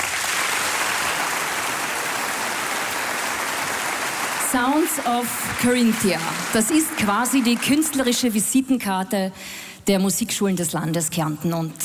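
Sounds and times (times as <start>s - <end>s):
audience applause: 0.0s - 8.4s
speech: 4.5s - 11.8s.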